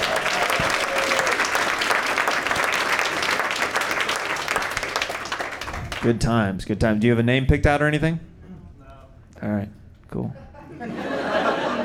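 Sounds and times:
audience applause at a live comedy show: 0:00.0 - 0:06.1
speech: 0:06.0 - 0:08.3
laughter: 0:10.3 - 0:11.8.

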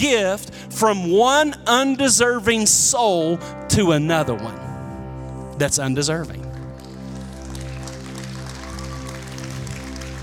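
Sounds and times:
speech: 0:00.0 - 0:04.7, 0:05.6 - 0:06.5
audience clapping: 0:06.5 - 0:10.2.

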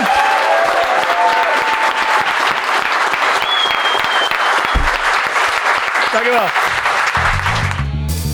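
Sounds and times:
crowd clapping: 0:00.0 - 0:08.2
voices and whistles: 0:03.4 - 0:05.0
speech: 0:06.3 - 0:06.7.

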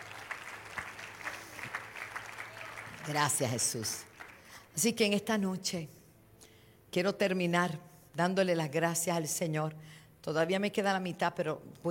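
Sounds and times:
church congregation applause: 0:00.0 - 0:04.7
speech: 0:03.1 - 0:04.1, 0:04.8 - 0:06.0, 0:06.9 - 0:11.9.

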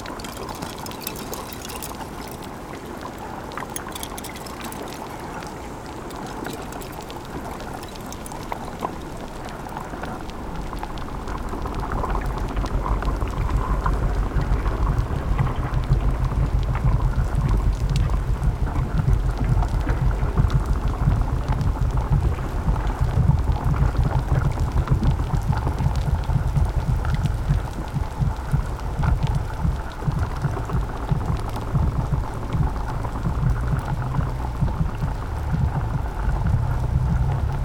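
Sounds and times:
crackling patter under ice in cove off St. Paul, Bering Sea: 0:00.0 - 0:37.6
low underwater rumble in Bering Sea: 0:11.7 - 0:37.6.

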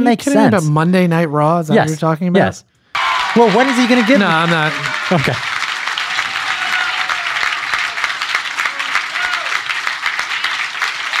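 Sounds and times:
speech: 0:00.0 - 0:02.7, 0:03.4 - 0:05.5
crowd applauding a speech: 0:02.9 - 0:11.1
faint cheers: 0:03.0 - 0:09.7.

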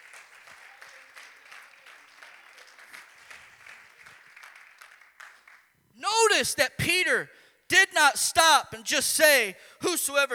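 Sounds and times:
audience clapping hands: 0:00.0 - 0:05.8
speech: 0:06.4 - 0:10.3.

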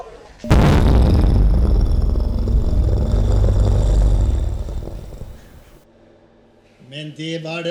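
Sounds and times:
bomb explosion: 0:00.5 - 0:05.7
speech: 0:07.0 - 0:07.7.

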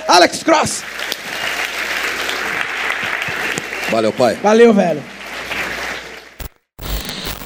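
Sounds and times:
speech: 0:00.1 - 0:01.5, 0:03.9 - 0:05.1
audience applause: 0:00.4 - 0:06.4.

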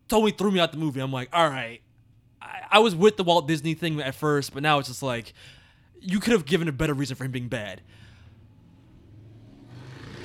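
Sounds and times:
speech: 0:00.1 - 0:01.8, 0:02.4 - 0:08.0
loud motorcycle passing: 0:08.4 - 0:10.2.

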